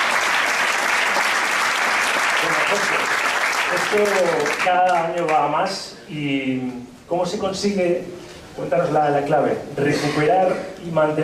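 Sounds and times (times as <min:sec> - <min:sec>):
audience applause: 0:00.0 - 0:05.1
speech: 0:02.7 - 0:03.0, 0:03.7 - 0:11.2.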